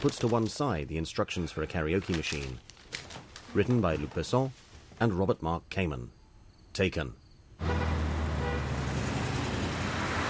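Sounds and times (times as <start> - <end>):
speech: 0.0 - 2.7, 3.6 - 6.2, 6.8 - 7.8
road traffic on a busy California street: 7.5 - 10.2.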